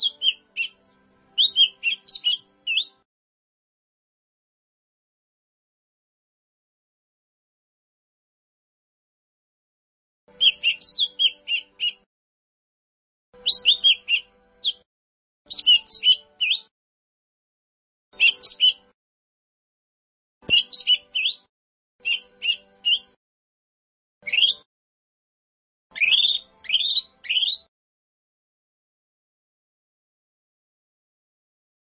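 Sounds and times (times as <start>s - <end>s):
bird song: 0.0s - 3.1s, 10.3s - 12.1s, 13.4s - 14.9s, 15.5s - 16.7s, 18.1s - 19.0s, 20.4s - 23.2s, 24.2s - 24.7s, 25.9s - 27.7s.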